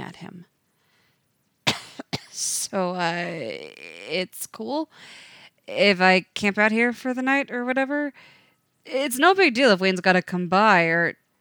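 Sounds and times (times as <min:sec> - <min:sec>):
speech: 0:00.1 - 0:00.6, 0:02.4 - 0:11.2
man clearing his throat: 0:01.7 - 0:02.4.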